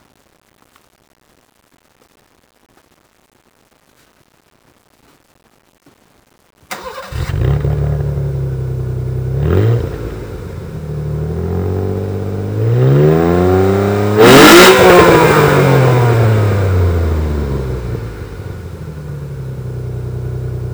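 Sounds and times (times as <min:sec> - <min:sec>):
Cadillac CTS engine startup: 0:06.7 - 0:20.7.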